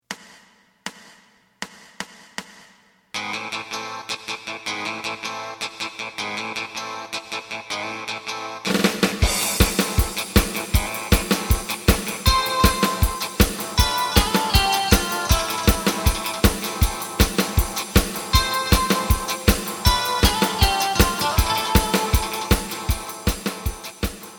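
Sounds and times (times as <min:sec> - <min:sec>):
bass: 0:08.7 - 0:24.3.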